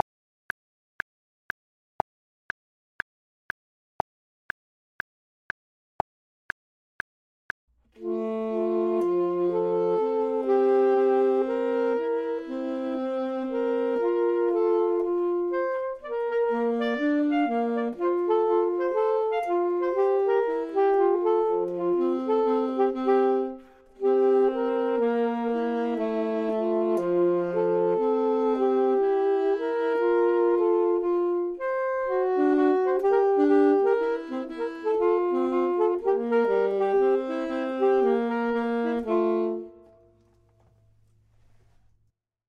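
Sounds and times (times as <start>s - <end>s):
saxophone: 8.0s - 40.8s
clarinet: 8.0s - 41.0s.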